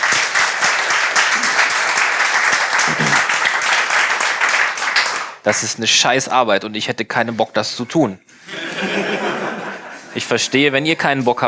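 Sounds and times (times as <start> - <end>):
audience applause: 0.0 - 5.4
laughter: 2.8 - 3.3, 8.4 - 10.8
speech: 5.5 - 8.5, 10.2 - 11.4.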